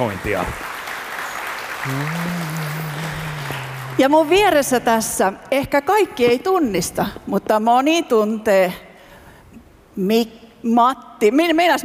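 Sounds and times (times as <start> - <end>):
speech: 0.0 - 0.7, 1.8 - 3.2, 4.0 - 8.8, 10.0 - 11.8
audience applause: 0.0 - 4.7.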